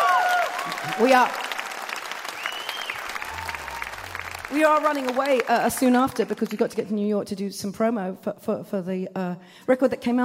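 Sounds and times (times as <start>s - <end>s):
audience cheering and whooping: 0.0s - 5.5s
audience clapping: 0.0s - 6.9s
speech: 0.8s - 1.4s, 4.5s - 10.2s
whistling: 2.3s - 3.9s.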